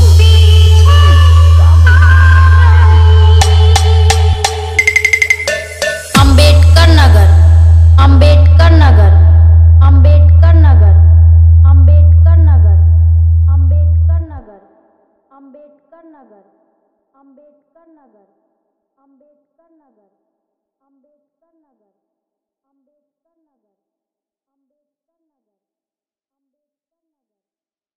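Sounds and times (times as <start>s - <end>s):
bass mix music: 0.0s - 14.4s.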